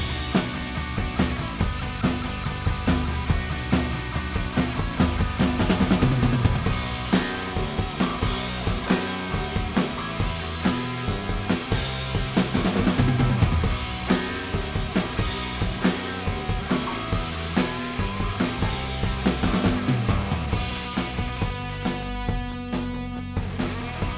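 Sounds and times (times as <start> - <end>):
drums: 0.0 - 24.1.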